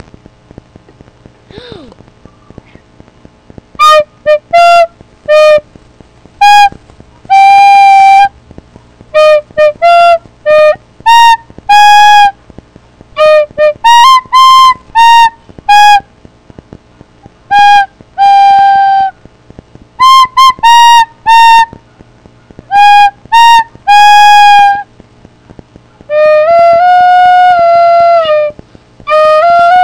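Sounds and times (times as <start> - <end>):
birthday song: 0.8 - 29.8
snake charmer music on flute: 3.8 - 5.6, 6.4 - 8.4, 9.1 - 12.4, 13.2 - 16.1, 17.4 - 19.2, 20.0 - 24.9, 25.9 - 29.8.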